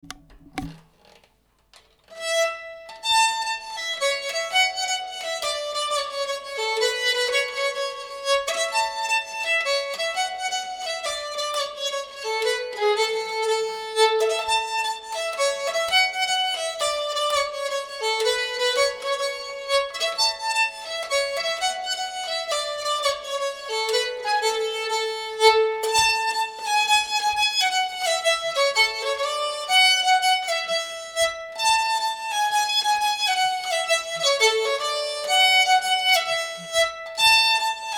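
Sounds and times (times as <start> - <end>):
polska folk tune from Röros: 2.1 - 37.9.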